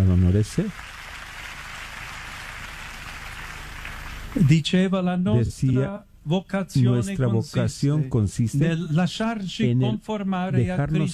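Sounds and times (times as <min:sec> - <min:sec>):
audience applause: 0:00.0 - 0:04.4
speech: 0:00.3 - 0:00.8, 0:04.4 - 0:11.1.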